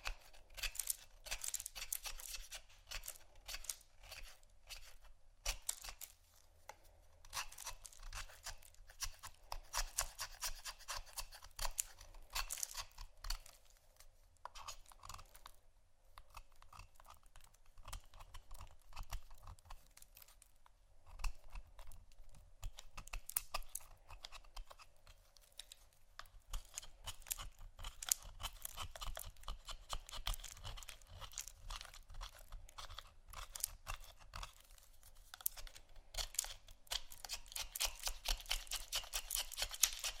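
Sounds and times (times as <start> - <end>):
soap and candle carving: 0.0 - 40.1.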